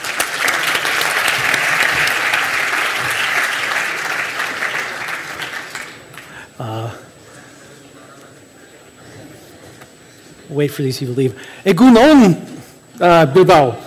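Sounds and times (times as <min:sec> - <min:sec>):
audience applause: 0:00.0 - 0:06.5
speech: 0:10.6 - 0:13.8.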